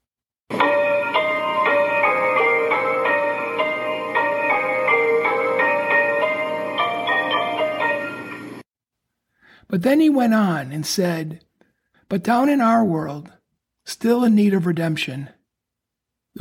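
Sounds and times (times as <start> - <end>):
bright high chime-like piano notes: 0.5 - 8.6
speech: 9.7 - 11.5, 12.1 - 15.4.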